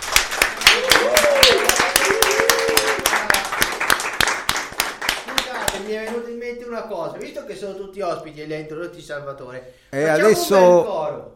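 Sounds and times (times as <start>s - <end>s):
audience applause: 0.0s - 6.0s
speech: 7.5s - 11.3s.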